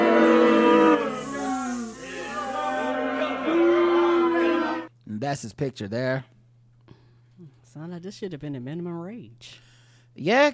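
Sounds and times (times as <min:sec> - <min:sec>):
crowd booing: 0:00.0 - 0:04.9
speech: 0:05.3 - 0:06.3, 0:07.7 - 0:10.5.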